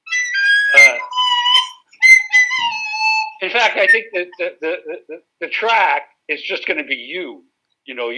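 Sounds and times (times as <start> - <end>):
flute playing: 0.0 - 4.4
speech: 3.4 - 8.1.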